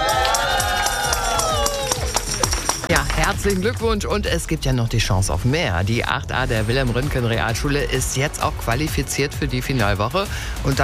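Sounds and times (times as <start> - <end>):
school class of eighth-graders cheering: 0.0 - 2.9
speech: 3.4 - 10.8.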